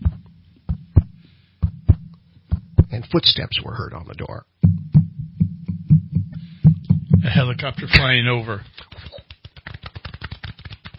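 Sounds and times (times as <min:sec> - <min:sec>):
heartbeat thumping: 0:00.0 - 0:03.0, 0:04.6 - 0:08.0
speech: 0:03.1 - 0:04.6, 0:07.2 - 0:08.8.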